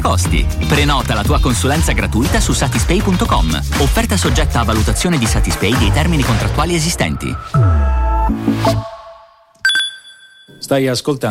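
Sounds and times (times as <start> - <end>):
speech: 0.1 - 9.0, 10.7 - 11.2
electronic alarm clock ringing with melodic beeps: 9.6 - 10.6
sharp high chime: 9.7 - 10.6.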